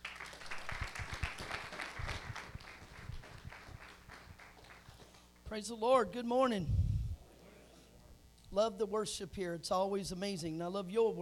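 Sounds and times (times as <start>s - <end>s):
crowd, audience hand clapping: 0.0s - 5.3s
speech: 5.5s - 6.8s, 8.5s - 11.2s.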